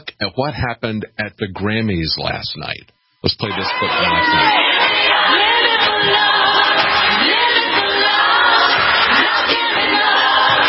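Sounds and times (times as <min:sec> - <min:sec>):
speech: 0:00.2 - 0:05.4
large crowd cheering: 0:03.4 - 0:10.6.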